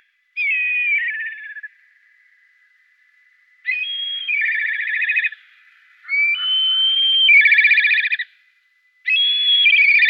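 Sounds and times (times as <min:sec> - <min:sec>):
black kite quavering whistle call: 0:00.4 - 0:01.8, 0:03.5 - 0:10.0.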